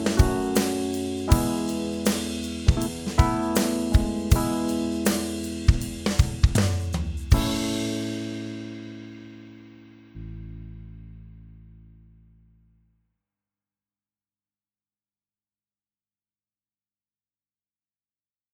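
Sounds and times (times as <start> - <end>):
chord in the key of A: 0.0 - 6.6, 7.3 - 10.1.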